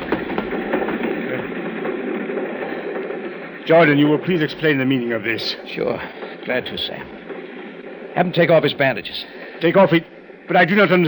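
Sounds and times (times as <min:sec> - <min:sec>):
moving train rattling along the rails: 0:00.0 - 0:07.3
speech: 0:03.7 - 0:07.2, 0:08.2 - 0:11.0.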